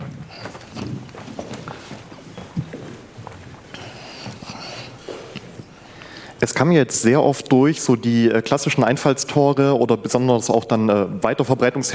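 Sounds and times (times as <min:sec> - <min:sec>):
footsteps of a person walking to the back of a hall: 0:00.0 - 0:07.6
speech: 0:06.4 - 0:11.9.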